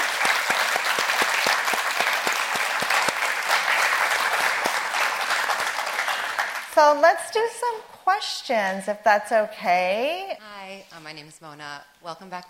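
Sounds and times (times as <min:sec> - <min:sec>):
audience applause: 0:00.0 - 0:06.8
speech: 0:06.8 - 0:12.4.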